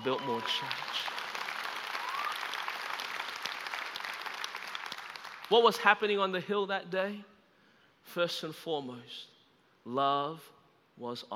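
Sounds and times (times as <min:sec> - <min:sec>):
speech: 0:00.0 - 0:01.2, 0:05.5 - 0:07.3, 0:08.0 - 0:11.3
church audience applause: 0:00.0 - 0:05.6.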